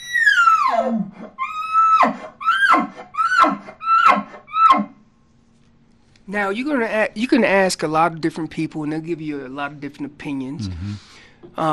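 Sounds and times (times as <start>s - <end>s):
champion elk caller imitating an elk location bugle: 0.3s - 5.0s
speech: 6.3s - 11.6s
imitated elk squealing grunts: 10.6s - 11.1s.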